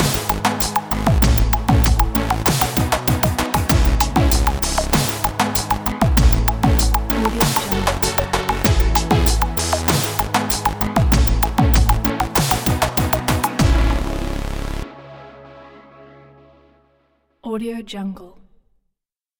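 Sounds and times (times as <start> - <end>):
upbeat pop electronica: 0.0 - 15.4.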